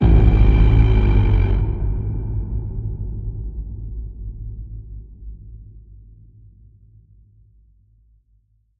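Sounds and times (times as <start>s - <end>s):
beastly deep boom: 0.0s - 5.8s.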